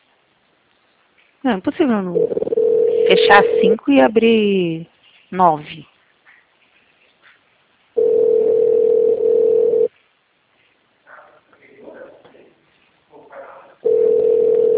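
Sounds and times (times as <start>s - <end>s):
speech: 1.4s - 5.9s
telephone ringback tone of an unanswered call: 2.2s - 3.8s, 8.0s - 9.9s, 13.8s - 14.7s.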